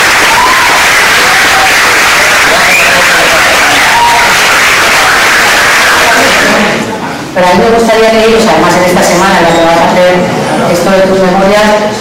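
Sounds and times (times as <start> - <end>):
audience clapping: 0.0 - 6.9
faint cheers and voices: 0.0 - 7.1
speech: 7.4 - 11.9.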